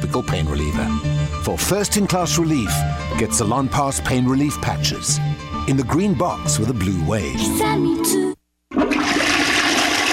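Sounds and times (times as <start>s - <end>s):
speech: 0.1s - 8.4s
toilet flushing and overflowing: 8.7s - 10.1s.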